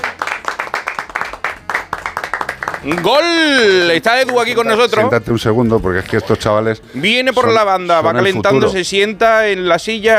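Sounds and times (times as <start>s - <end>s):
small group clapping: 0.0s - 5.1s
speech: 2.8s - 10.1s.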